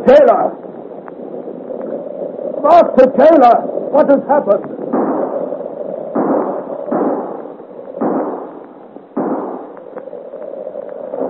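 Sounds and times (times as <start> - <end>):
speech: 0.0 - 0.6, 2.6 - 4.8
gunshots: 4.9 - 9.9.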